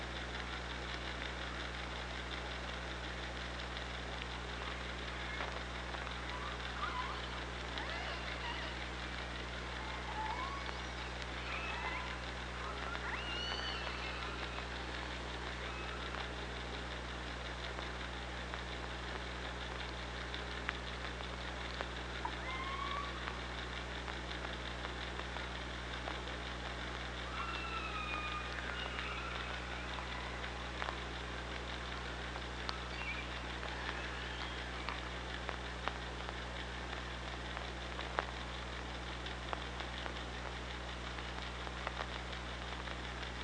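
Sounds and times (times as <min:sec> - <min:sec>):
killer whale clicks: 0:00.2 - 0:43.4
killer whale calls underwater: 0:06.3 - 0:08.9, 0:09.7 - 0:16.3, 0:22.2 - 0:23.6, 0:27.2 - 0:31.2.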